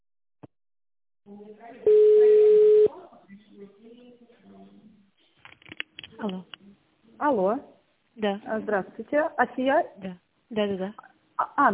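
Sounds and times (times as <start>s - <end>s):
speech: 1.3s - 2.3s, 5.6s - 6.5s, 7.2s - 11.7s
telephone tone while placing a call: 1.9s - 2.9s.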